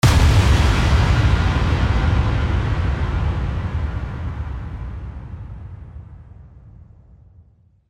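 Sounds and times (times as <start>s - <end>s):
impact: 0.0s - 5.7s.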